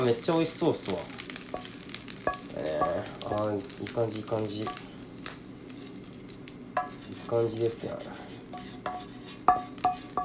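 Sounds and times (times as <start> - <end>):
speech: 0.0 - 1.8, 2.6 - 4.9, 7.1 - 8.3
fried rice stir-frying in a pan, sizzling: 0.0 - 10.2
spatula scraping and clattering in a pan: 6.8 - 10.2.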